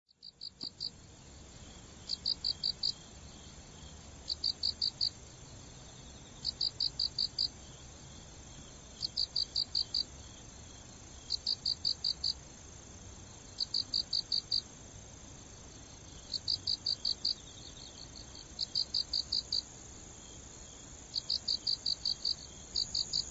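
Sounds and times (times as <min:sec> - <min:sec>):
autumn insect chirping: 0:00.1 - 0:23.2.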